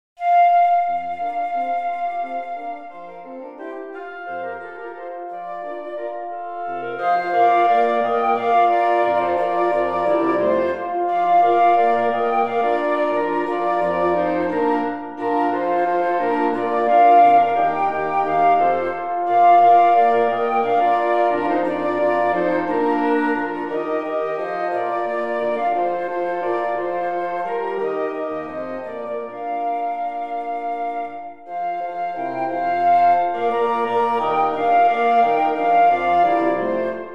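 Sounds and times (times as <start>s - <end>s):
wind quintet: 0.2s - 37.1s.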